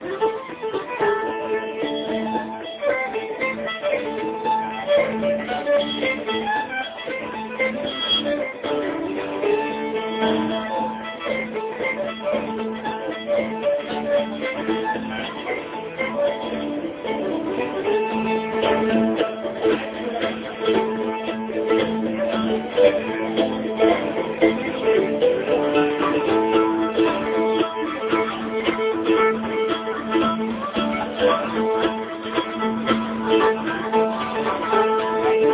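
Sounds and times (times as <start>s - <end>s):
mandolin tune: 0.0s - 35.5s.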